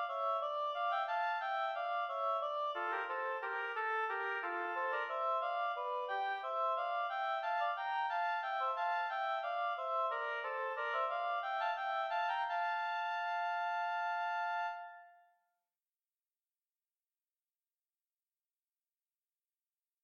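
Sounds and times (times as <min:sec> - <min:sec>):
two oboes playing an air en rondeau: 0:00.0 - 0:15.2.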